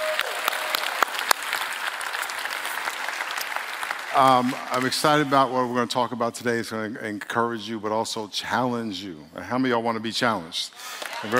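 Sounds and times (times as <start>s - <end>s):
audience applause for visitors: 0.0s - 5.4s, 10.8s - 11.3s
speech: 4.2s - 11.3s.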